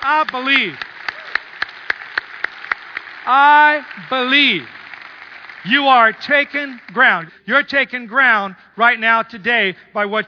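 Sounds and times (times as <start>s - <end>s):
speech: 0.0s - 0.9s, 3.2s - 4.8s, 5.6s - 10.2s
rhythmic audience clapping: 0.0s - 7.3s.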